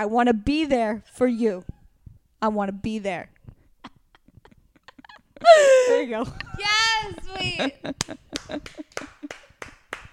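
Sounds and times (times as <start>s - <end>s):
speech: 0.0s - 1.8s, 2.4s - 3.3s, 5.4s - 9.4s
laughter: 3.9s - 9.6s
brief applause clapping: 7.9s - 10.1s.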